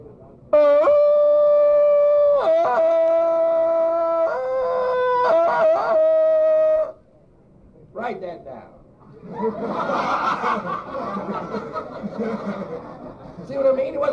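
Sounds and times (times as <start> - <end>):
man imitating Tarzan's jungle yell: 0.6 - 7.0
speech: 8.1 - 14.1
laughter: 9.1 - 13.5.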